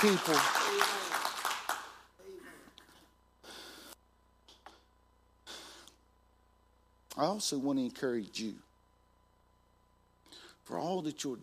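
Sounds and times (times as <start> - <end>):
speech: 0.0 - 1.0, 7.2 - 8.7, 10.7 - 11.4
audience hand clapping: 0.0 - 2.1.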